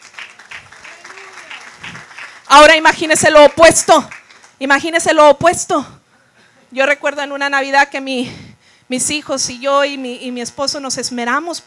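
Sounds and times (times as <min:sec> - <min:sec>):
audience applause: 0:00.0 - 0:02.8, 0:03.4 - 0:04.5
speech: 0:02.5 - 0:06.0, 0:06.7 - 0:11.6.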